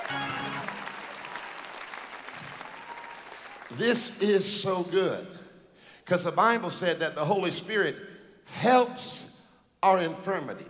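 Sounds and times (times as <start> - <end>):
crowd clapping: 0.0 - 4.0
speech: 3.7 - 5.4, 6.1 - 10.6.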